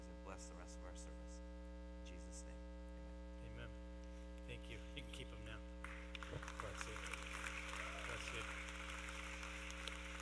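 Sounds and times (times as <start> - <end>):
low constant hum: 0.0 - 10.1
speech: 0.3 - 2.8, 3.4 - 3.9, 4.5 - 8.8
crowd clapping: 5.8 - 10.1.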